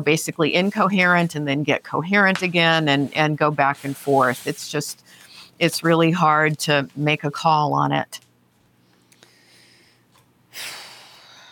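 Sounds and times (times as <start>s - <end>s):
speech: 0.0s - 8.2s, 10.6s - 10.8s
person taking a breath: 9.0s - 11.5s.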